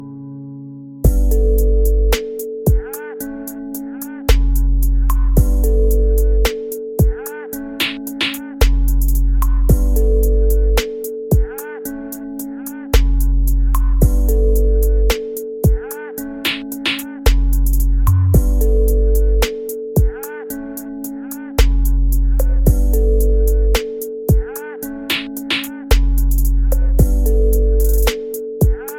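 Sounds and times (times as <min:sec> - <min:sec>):
instrumental music: 0:00.0 - 0:28.9.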